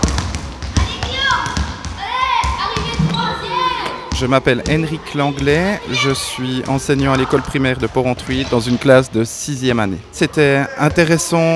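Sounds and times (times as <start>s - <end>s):
basketball dribbled around poles: 0.0s - 5.9s, 6.6s - 8.8s
speech: 4.2s - 11.5s.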